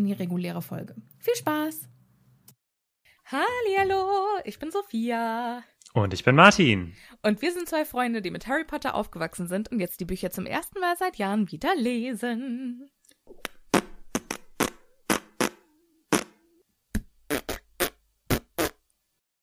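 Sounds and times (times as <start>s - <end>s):
speech: 0.0s - 2.0s, 3.3s - 13.5s
lips blowing raspberry tune: 13.3s - 16.4s, 17.3s - 18.8s
sharp pops: 13.3s - 18.8s.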